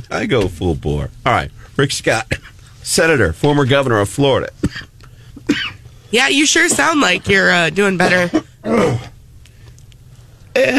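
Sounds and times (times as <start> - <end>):
speech: 0.0 - 4.9, 5.5 - 9.1, 10.6 - 10.7
person coughing: 4.6 - 5.8, 8.0 - 9.1, 10.6 - 10.7.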